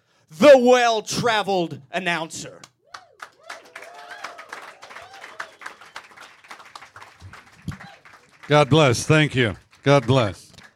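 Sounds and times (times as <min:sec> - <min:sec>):
speech: 0:00.3 - 0:02.7, 0:08.5 - 0:10.4
audience applause welcoming an announcer at a live show: 0:03.0 - 0:10.7.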